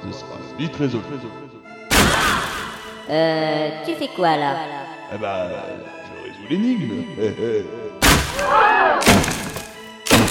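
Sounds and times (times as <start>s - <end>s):
speech: 0.2s - 1.5s, 3.1s - 9.1s
heavy wooden bench slamming into a wooden door: 9.0s - 10.2s.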